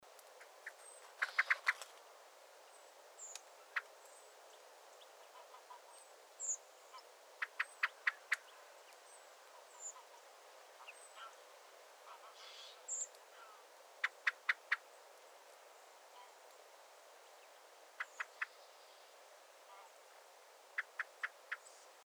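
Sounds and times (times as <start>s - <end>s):
faint birds: 0.0s - 22.0s
common blackbird clicking calls: 0.2s - 2.0s, 7.4s - 9.0s, 14.0s - 14.8s, 18.0s - 18.6s, 20.8s - 21.7s.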